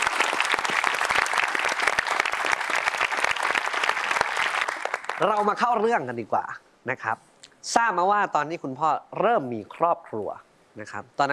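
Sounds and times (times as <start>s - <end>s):
audience applause: 0.0s - 5.5s
speech: 5.2s - 11.3s.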